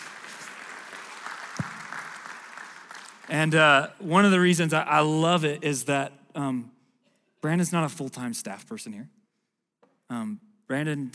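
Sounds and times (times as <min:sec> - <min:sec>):
audience applause: 0:00.0 - 0:03.6
speech: 0:03.3 - 0:06.8, 0:07.4 - 0:09.2, 0:10.1 - 0:11.1.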